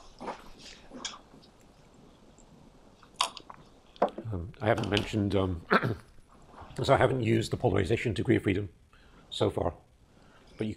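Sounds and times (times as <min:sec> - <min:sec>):
person sipping water: 0:00.0 - 0:04.0
speech: 0:04.6 - 0:06.1, 0:06.8 - 0:09.8, 0:10.6 - 0:10.7.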